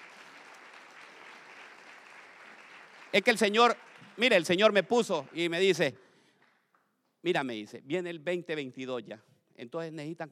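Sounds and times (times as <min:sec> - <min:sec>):
audience applause: 0:00.0 - 0:05.9
speech: 0:03.1 - 0:06.0, 0:07.2 - 0:10.3.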